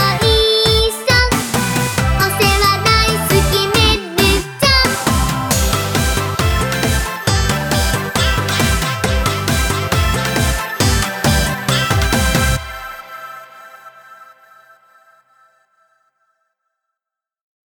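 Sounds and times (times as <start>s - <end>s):
solo dance music: 0.0s - 13.6s.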